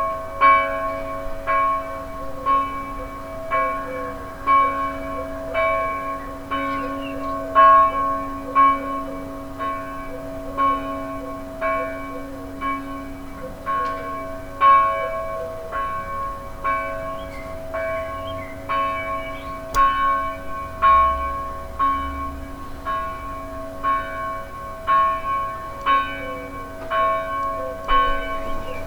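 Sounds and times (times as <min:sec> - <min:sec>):
church bells ringing: 0:00.0 - 0:28.8
birds: 0:05.5 - 0:08.1, 0:16.9 - 0:20.4, 0:25.5 - 0:28.8.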